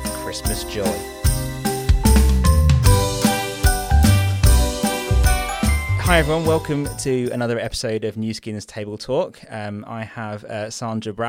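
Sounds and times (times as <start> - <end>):
festive bells jingling: 0.0 - 7.5
speech: 0.3 - 1.2, 6.1 - 11.2.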